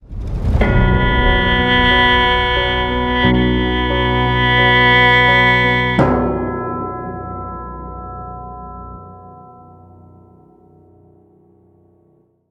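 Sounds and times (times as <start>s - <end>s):
tension music with stop at 99 bpm: 0.0s - 10.6s.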